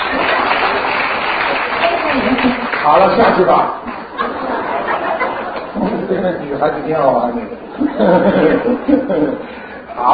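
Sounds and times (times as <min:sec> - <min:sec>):
audience applause: 0:00.0 - 0:03.6
laughter: 0:02.0 - 0:06.8, 0:07.6 - 0:09.6
speech: 0:02.8 - 0:03.9, 0:06.1 - 0:10.1.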